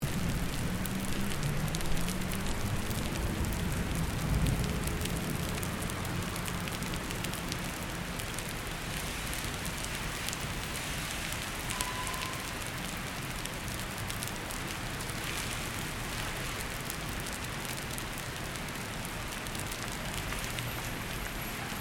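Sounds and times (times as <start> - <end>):
rain on city pavement: 0.0 - 21.8.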